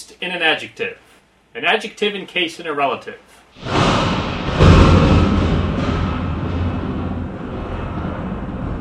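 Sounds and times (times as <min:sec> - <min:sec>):
speech: 0:00.0 - 0:04.2
thunder sound effect: 0:03.6 - 0:08.7.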